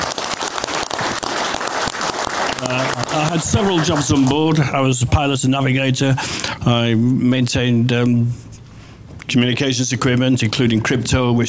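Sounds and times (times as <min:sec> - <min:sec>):
audience applause: 0:00.0 - 0:04.7
speech: 0:03.3 - 0:08.5, 0:09.3 - 0:11.4.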